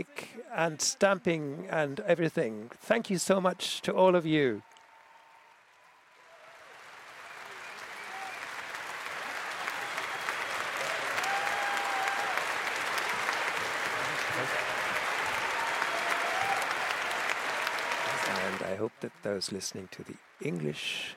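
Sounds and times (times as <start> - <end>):
speech: 0.0 - 4.7, 19.3 - 21.1
audience applause: 4.5 - 21.1.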